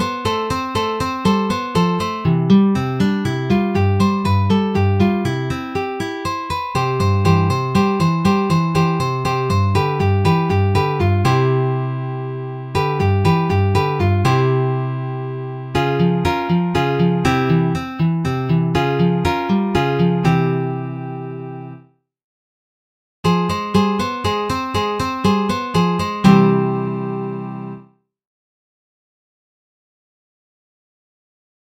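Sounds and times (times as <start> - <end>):
guitar duet: 0.0 - 21.8, 23.3 - 27.8.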